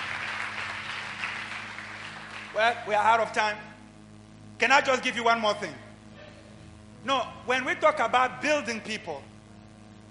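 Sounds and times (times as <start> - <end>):
audience applause: 0.0 - 2.6
speech: 2.6 - 3.7, 4.6 - 5.9, 7.0 - 9.3.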